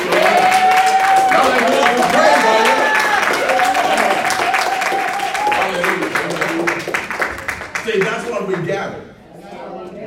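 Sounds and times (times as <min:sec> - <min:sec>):
crowd cheering and shouting: 0:00.0 - 0:05.8
crowd applause: 0:00.0 - 0:08.7.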